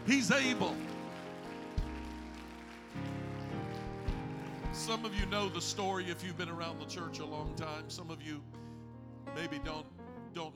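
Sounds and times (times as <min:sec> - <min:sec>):
audience clapping hands in praise: 0:00.0 - 0:06.2
speech: 0:00.1 - 0:00.9, 0:04.8 - 0:08.6, 0:09.4 - 0:10.5.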